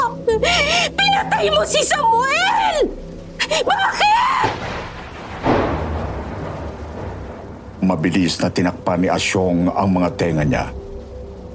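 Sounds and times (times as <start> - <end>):
pouring rain: 0.0 - 11.5
speech: 0.4 - 4.5, 7.9 - 10.8
thunder: 4.1 - 9.4.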